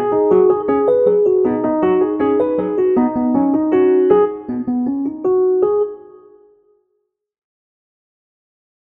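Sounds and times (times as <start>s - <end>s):
instrumental melody: 0.0s - 6.7s.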